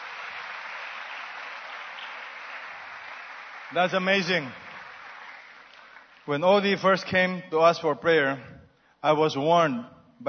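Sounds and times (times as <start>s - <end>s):
audience applause: 0.0s - 6.6s
speech: 3.7s - 4.6s, 6.3s - 10.2s.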